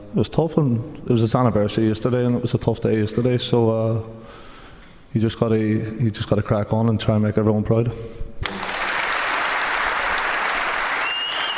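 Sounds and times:
speech: 0.1 - 4.4, 5.1 - 8.5
live audience applause: 8.4 - 11.5.

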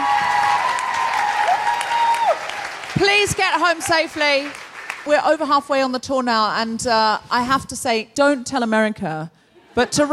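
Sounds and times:
concert audience applauding: 0.0 - 5.1
speech: 3.0 - 10.1.

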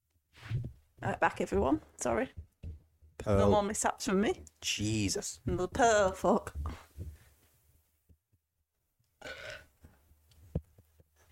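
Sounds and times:
speech: 1.0 - 2.4, 3.2 - 6.8
burp into the microphone: 9.2 - 9.7.

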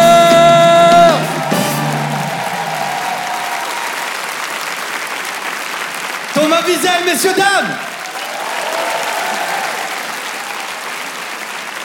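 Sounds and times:
crowd applause and cheering: 0.0 - 11.8
sustained high whoop: 0.9 - 4.2, 8.0 - 10.7
speech: 6.9 - 7.9.

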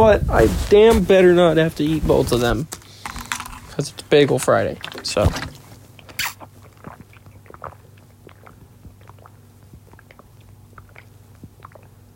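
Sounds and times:
speech: 0.0 - 2.8, 3.8 - 5.6
person drinking water: 5.9 - 12.1.

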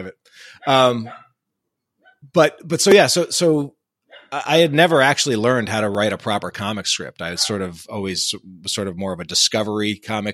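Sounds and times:
speech: 0.0 - 1.2, 2.3 - 10.3
dog barking: 1.0 - 1.3, 7.4 - 7.6.

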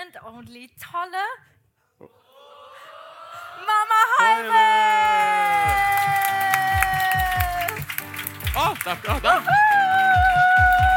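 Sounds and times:
speech: 0.2 - 2.2, 3.6 - 5.0, 8.8 - 9.8
audience cheering and clapping for an arriving guest: 2.3 - 10.9.

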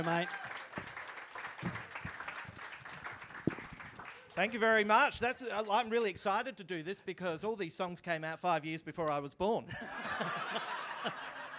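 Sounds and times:
speech: 0.0 - 0.6, 4.4 - 11.2
audience applause greeting a guest coming on stage at a live show: 0.0 - 4.8
laughter: 9.7 - 11.5.

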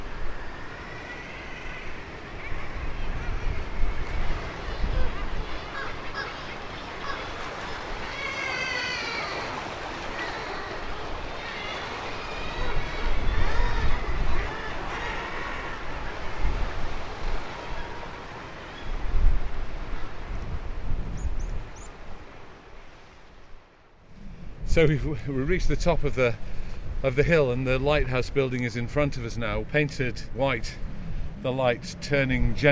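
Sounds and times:
seabird cries echoing off cliffs: 0.0 - 19.1
surf roaring: 0.0 - 32.7
wind on a hilltop: 0.0 - 32.7
speech: 24.7 - 30.8, 31.4 - 32.7.

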